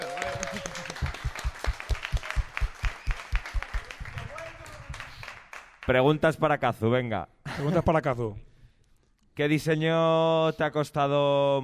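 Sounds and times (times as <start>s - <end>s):
rhythmic unison audience claps: 0.0s - 6.0s
speech: 5.9s - 8.5s, 9.4s - 11.6s.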